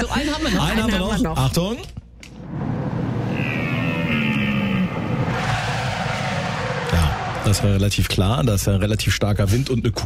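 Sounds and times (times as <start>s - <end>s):
speech: 0.1s - 2.0s, 7.5s - 10.0s
car engine and road noise: 2.2s - 8.4s
car tires squealing under hard braking: 3.0s - 8.0s.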